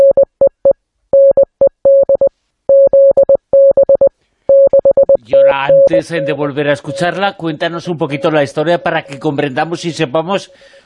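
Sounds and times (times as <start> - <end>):
Morse code tones: 0.0 - 10.6
speech: 5.6 - 10.8.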